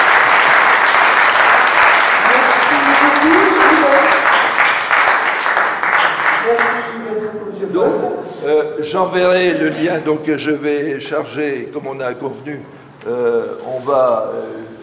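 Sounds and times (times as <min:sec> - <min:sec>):
audience applause: 0:00.0 - 0:07.0
speech: 0:08.4 - 0:14.6.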